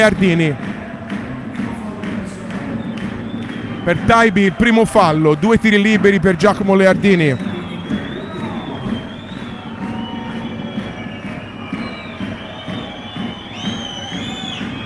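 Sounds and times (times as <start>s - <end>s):
speech: 0.0s - 0.8s, 3.9s - 7.5s
crowd roaring in a basketball arena: 0.0s - 14.8s
shrill, wavering whistle-like tones: 2.8s - 4.8s, 7.1s - 14.8s.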